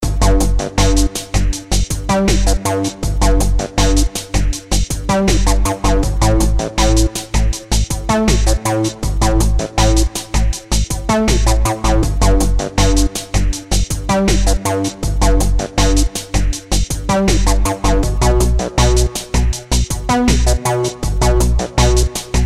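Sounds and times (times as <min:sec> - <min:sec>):
slow techno music: 0:00.0 - 0:22.4.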